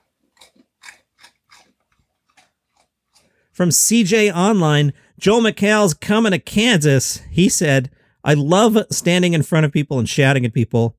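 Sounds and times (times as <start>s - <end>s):
dog crunching and chewing potato chips: 0.0s - 3.4s
speech: 3.6s - 10.9s.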